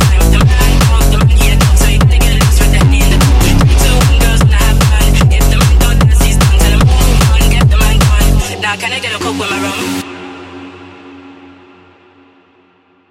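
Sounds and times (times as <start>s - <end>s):
techno music: 0.0s - 10.4s.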